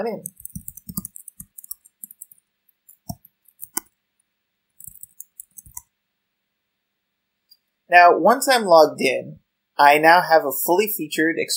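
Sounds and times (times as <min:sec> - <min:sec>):
speech: 0:00.0 - 0:00.4, 0:07.9 - 0:11.5
computer mouse clicking to submit an online form: 0:00.2 - 0:03.9, 0:04.8 - 0:05.9.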